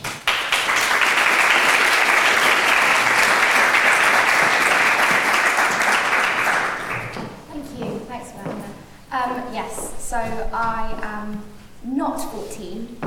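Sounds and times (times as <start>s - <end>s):
audience applause: 0.0s - 7.2s
speech: 10.5s - 13.0s.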